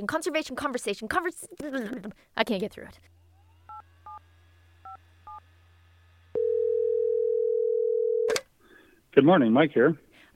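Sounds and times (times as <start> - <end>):
speech: 0.0 - 3.2, 9.2 - 10.3
steady telephone tone: 6.4 - 8.4.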